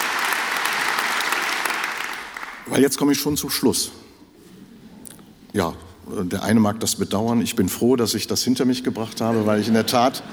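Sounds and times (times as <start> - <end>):
audience clapping in the opera house at Offenbachplatz in Cologne: 0.0 - 2.8
speech: 2.7 - 4.0, 5.6 - 10.3
laughter: 9.0 - 10.3.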